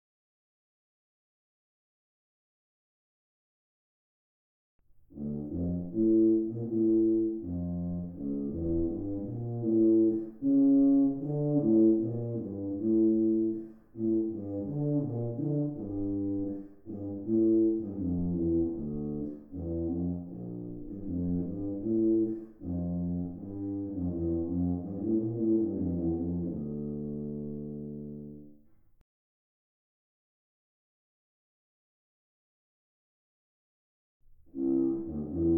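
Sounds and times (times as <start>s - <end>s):
tuba: 5.0s - 28.8s, 34.2s - 35.5s.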